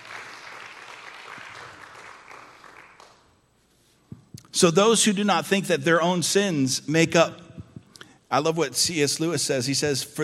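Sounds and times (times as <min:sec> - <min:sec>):
audience applauding: 0:00.0 - 0:03.3
speech: 0:04.6 - 0:07.4, 0:08.3 - 0:10.2.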